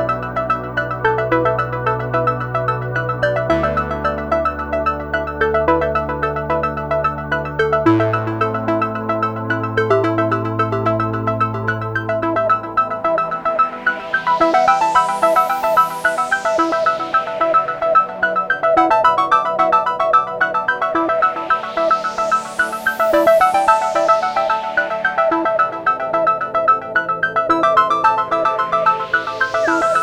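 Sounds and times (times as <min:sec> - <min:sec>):
analog synthesizer sequence: 0:00.0 - 0:30.0.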